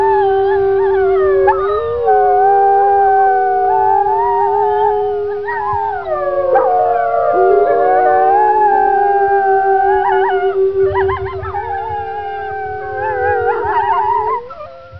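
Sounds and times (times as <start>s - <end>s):
wolf howling: 0.0s - 14.9s.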